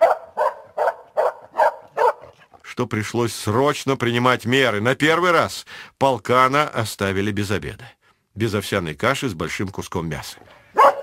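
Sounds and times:
customs sniffer dog barking: 0.0s - 2.4s, 10.5s - 11.0s
speech: 2.8s - 10.6s.

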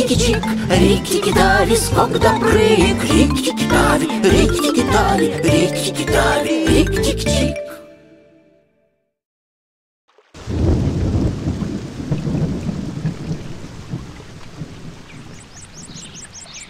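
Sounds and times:
speech: 0.1s - 7.6s
deep rumbling thunder: 10.4s - 16.1s
heavy rain of a thunderstorm: 10.4s - 16.6s.

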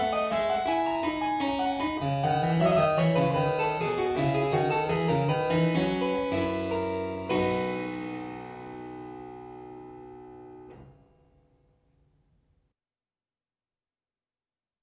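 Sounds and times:
harpsichord invention in C: 0.0s - 10.9s.

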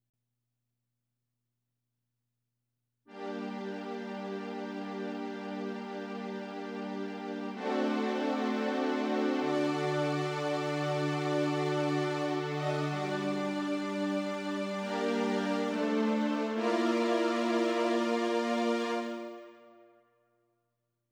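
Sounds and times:
synth: 3.3s - 19.8s.

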